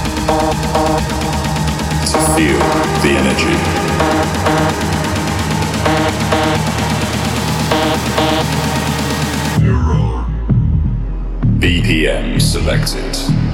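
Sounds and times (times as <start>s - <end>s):
loud dense synthesized buzzing pulse: 0.0s - 9.6s
deep booming heartbeat-like thumps: 0.0s - 13.5s
speech: 0.3s - 1.2s, 2.1s - 5.1s, 7.8s - 8.9s, 11.6s - 13.4s.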